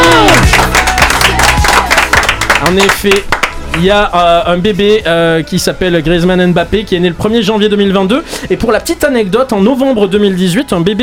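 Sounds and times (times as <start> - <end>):
audience applause and cheering: 0.0 - 3.8
speech: 2.6 - 11.0.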